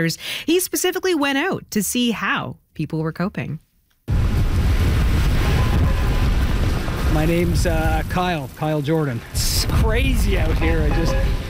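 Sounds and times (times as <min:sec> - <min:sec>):
speech: 0:00.0 - 0:03.7, 0:07.1 - 0:11.4
strong wind outdoors: 0:04.1 - 0:08.6, 0:09.2 - 0:11.4
heavy rain outdoors: 0:04.1 - 0:11.4.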